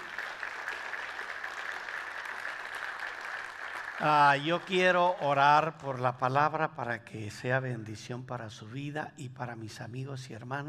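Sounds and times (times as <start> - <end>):
audience applause: 0.0 - 5.7
speech: 4.0 - 10.6.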